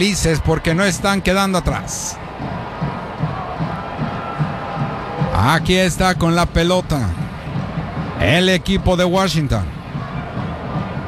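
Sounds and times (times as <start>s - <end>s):
speech: 0.0s - 3.0s, 5.4s - 7.2s, 8.2s - 9.8s
large stadium crowd cheering: 0.0s - 11.0s
regular low thumps: 2.1s - 11.0s.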